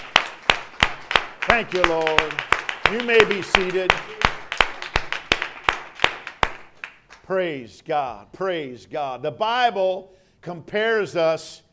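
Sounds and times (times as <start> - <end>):
group clapping hands in unison while seated: 0.0 - 7.3
speech: 1.6 - 4.2, 7.3 - 11.6.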